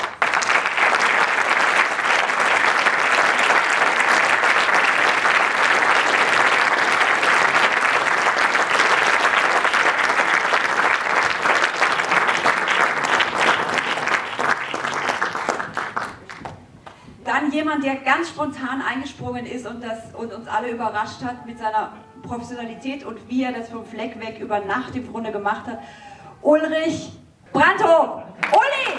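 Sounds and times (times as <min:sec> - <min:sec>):
audience applause: 0:00.0 - 0:16.7, 0:28.4 - 0:28.9
speech: 0:17.8 - 0:28.2.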